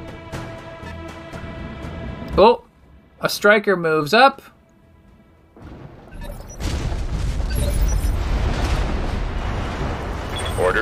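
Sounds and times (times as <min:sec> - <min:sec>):
speech: 0:02.4 - 0:02.6, 0:03.2 - 0:04.5
explosion of a destroyed vehicle in a mech video game: 0:05.6 - 0:10.8.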